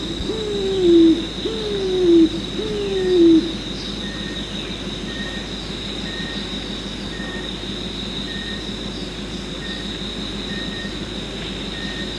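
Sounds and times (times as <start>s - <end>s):
pigeon giving hollow coos: 0.0s - 3.6s.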